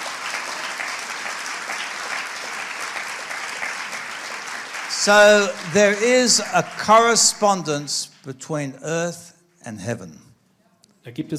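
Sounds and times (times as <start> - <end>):
audience clapping hands: 0.0 - 8.2
speech: 5.0 - 10.2, 11.0 - 11.3.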